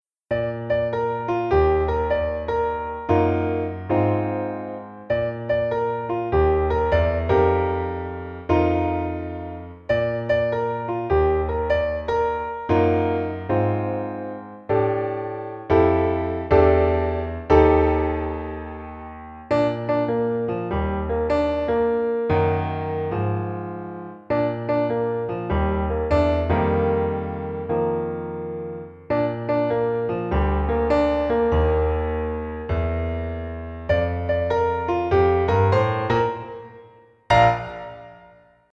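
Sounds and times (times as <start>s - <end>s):
solo piano: 0.1s - 38.7s.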